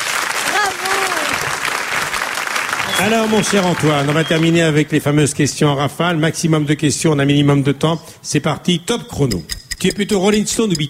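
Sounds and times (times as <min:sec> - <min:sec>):
audience applause for a singer: 0:00.0 - 0:04.8
speech: 0:03.0 - 0:10.8.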